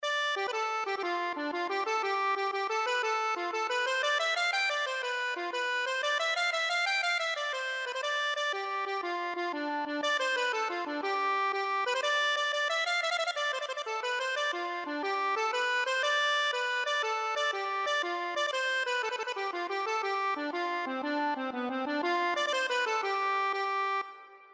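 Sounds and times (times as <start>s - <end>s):
accordion: 0.0s - 24.5s.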